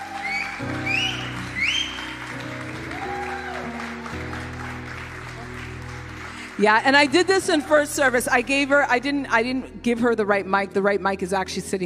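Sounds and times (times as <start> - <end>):
high whoops from audience: 0.0 - 4.1
audience applause: 0.0 - 8.4
speech: 0.6 - 0.8, 6.6 - 11.8.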